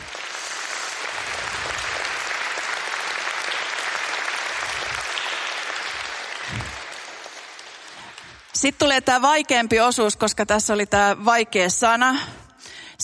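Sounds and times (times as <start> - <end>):
audience applause: 0.0 - 8.8
speech: 8.6 - 12.4.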